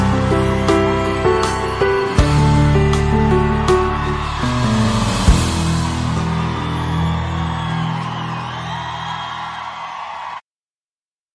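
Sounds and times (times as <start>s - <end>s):
sertanejo music: 0.0s - 9.0s.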